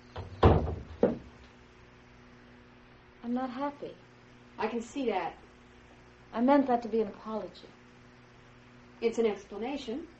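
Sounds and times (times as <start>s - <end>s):
door being pushed shut into its frame: 0.1s - 1.3s
speech: 3.4s - 5.4s, 6.3s - 7.8s, 9.0s - 10.1s.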